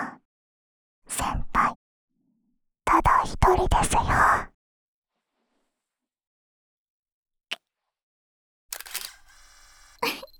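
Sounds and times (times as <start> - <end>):
speech: 3.2 - 4.5
camera shutter clicking: 8.7 - 9.9.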